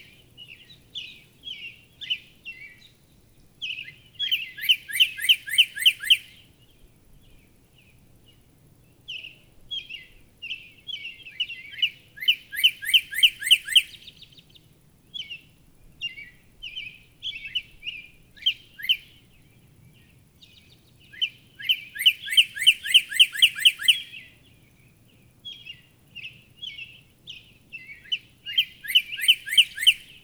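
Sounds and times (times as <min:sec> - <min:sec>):
Northern cardinal singing steep downslurred whistles: 0:04.2 - 0:06.3, 0:12.2 - 0:14.1, 0:21.2 - 0:24.3, 0:27.8 - 0:30.2.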